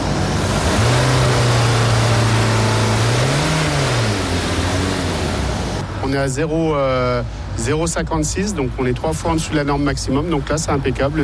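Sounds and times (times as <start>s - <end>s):
car engine revving during an exhaust smoke opacity test: 0.0s - 5.9s
speech: 6.1s - 11.2s.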